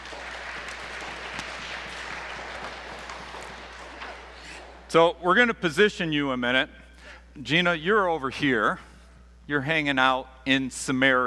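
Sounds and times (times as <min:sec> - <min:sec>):
audience applause: 0:00.0 - 0:04.9
speech: 0:04.9 - 0:06.8, 0:07.4 - 0:08.9, 0:09.5 - 0:11.2.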